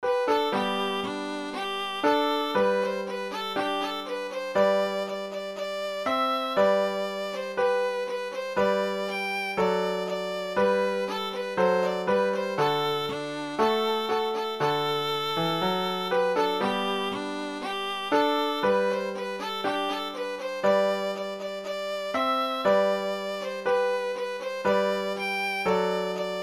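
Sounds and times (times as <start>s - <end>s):
violin: 0.0s - 26.4s.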